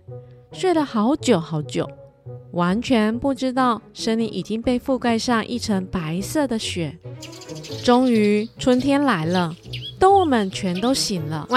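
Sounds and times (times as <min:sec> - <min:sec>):
speech: 0:00.6 - 0:02.0, 0:02.6 - 0:11.5
many small birds singing: 0:07.2 - 0:11.5.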